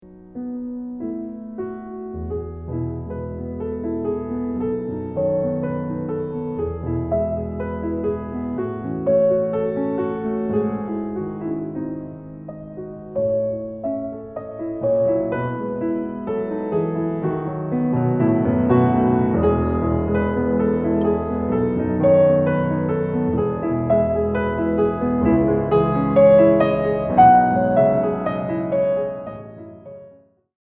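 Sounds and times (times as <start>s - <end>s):
piano sonata: 0.0s - 30.5s.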